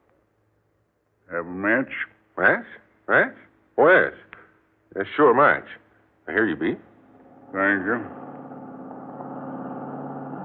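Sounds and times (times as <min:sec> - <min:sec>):
speech: 0:01.3 - 0:04.2, 0:04.9 - 0:06.9, 0:07.5 - 0:08.2
car engine running as it pulls in at a gas station: 0:07.1 - 0:10.4.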